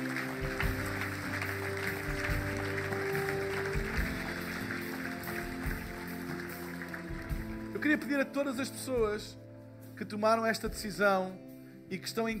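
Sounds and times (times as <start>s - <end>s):
audience applause: 0.0s - 8.1s
speech: 7.8s - 9.4s, 10.0s - 12.3s.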